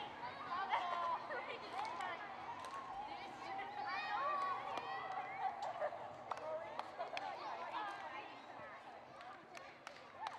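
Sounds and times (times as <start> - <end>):
children playing and chattering on a playground: 0.0 - 9.9.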